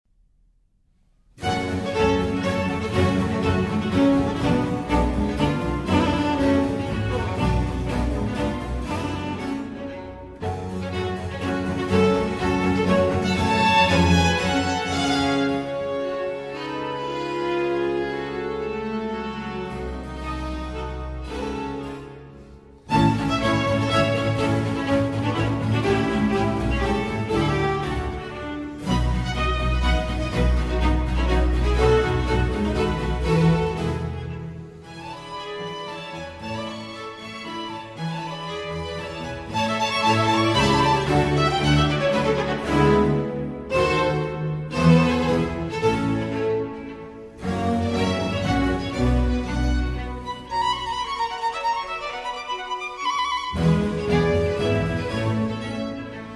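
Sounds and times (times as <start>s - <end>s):
concerto in G minor: 1.2s - 56.3s.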